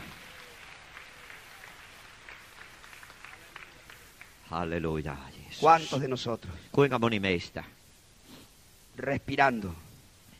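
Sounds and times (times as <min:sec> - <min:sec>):
audience applause: 0:00.0 - 0:04.4
speech: 0:04.5 - 0:07.8, 0:09.0 - 0:09.8.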